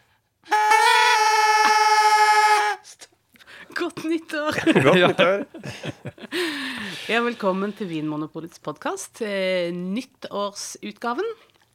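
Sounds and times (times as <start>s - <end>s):
New Year's party horn blast: 0.5s - 3.0s
speech: 4.0s - 6.1s, 7.1s - 11.5s
laughter: 4.5s - 7.0s.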